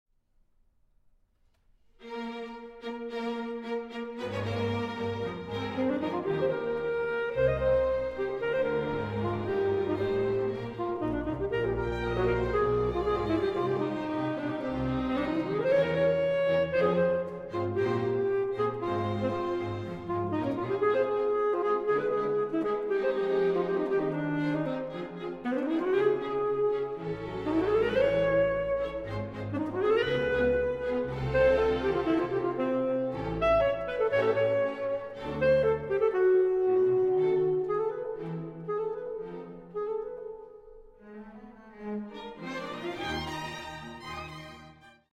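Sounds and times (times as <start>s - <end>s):
saxophone concerto: 2.0s - 44.9s.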